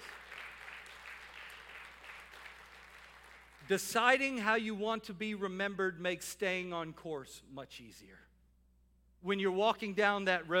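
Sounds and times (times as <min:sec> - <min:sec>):
crowd clapping in praise: 0:00.0 - 0:03.7
speech: 0:03.7 - 0:08.3, 0:09.2 - 0:10.5.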